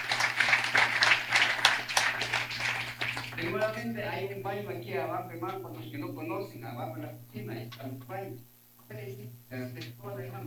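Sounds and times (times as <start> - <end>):
applause: 0.0 - 3.8
speech: 3.5 - 10.4.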